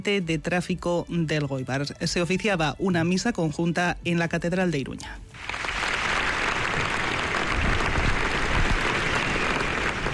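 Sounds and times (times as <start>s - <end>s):
speech: 0.0s - 5.7s
applause at a funeral farewell: 5.3s - 10.1s.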